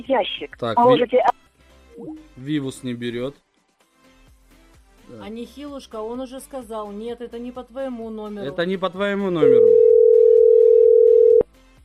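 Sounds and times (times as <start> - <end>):
speech: 0.0 - 1.4, 2.0 - 3.5, 5.1 - 9.8
phone tone after a dropped call: 9.4 - 11.5.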